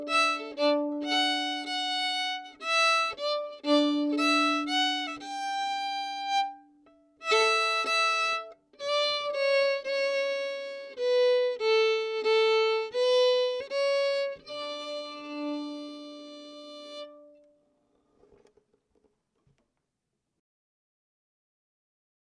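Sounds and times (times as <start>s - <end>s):
slow fiddle breakdown: 0.0s - 17.6s.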